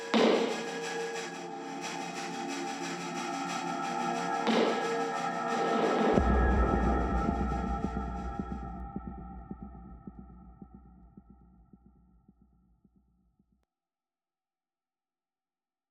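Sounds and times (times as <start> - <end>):
sine wave tone: 0.0 - 11.2.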